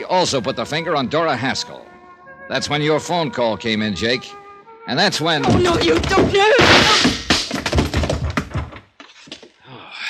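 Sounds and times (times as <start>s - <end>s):
speech: 0.0s - 7.3s
blow striking a woman: 5.4s - 7.6s.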